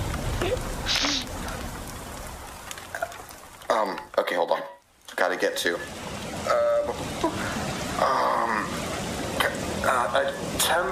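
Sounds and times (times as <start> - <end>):
driving rain: 0.0 - 10.9
speech: 5.4 - 6.6.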